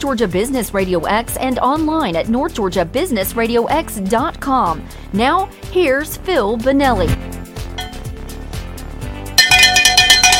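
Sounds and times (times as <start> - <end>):
speech: 0.0 - 7.4
bell ringing: 7.8 - 8.2, 9.4 - 10.3.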